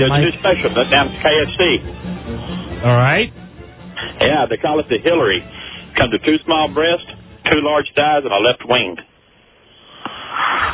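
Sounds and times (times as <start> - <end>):
speech: 0.0 - 3.4, 4.0 - 9.1
heavy breathing from a caller on a phone line during a call-in show: 2.3 - 2.8, 3.9 - 4.2, 5.4 - 6.0
sniff: 9.8 - 10.7.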